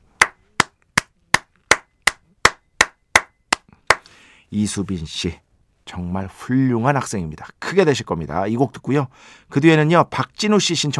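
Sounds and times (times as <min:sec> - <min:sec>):
clapping hands: 0:00.2 - 0:04.1
speech: 0:04.5 - 0:10.9.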